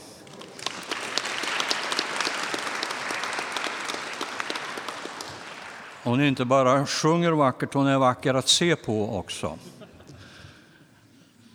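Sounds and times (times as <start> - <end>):
audience applause: 0.0 - 6.5
speech: 6.0 - 9.8.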